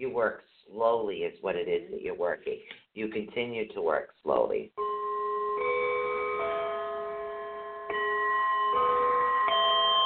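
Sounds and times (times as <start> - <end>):
speech: 0.0 - 4.8
singing bowl ringing: 4.8 - 10.0.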